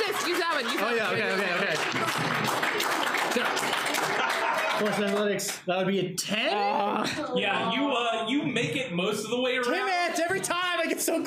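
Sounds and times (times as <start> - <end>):
laughter: 0.0 - 5.5, 6.4 - 11.2
hands clapping: 0.0 - 5.6
speech: 4.8 - 11.2.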